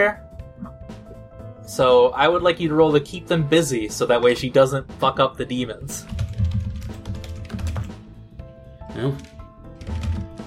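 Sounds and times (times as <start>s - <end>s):
speech: 0.0s - 0.2s, 1.7s - 6.2s, 9.0s - 9.3s
typing on a computer keyboard during a role-playing game session: 6.1s - 8.0s, 9.2s - 10.4s.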